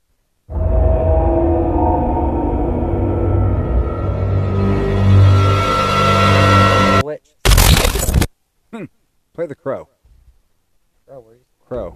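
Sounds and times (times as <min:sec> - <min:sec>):
eerie drone intro: 0:00.5 - 0:07.0
speech: 0:08.8 - 0:10.0, 0:11.7 - 0:11.9.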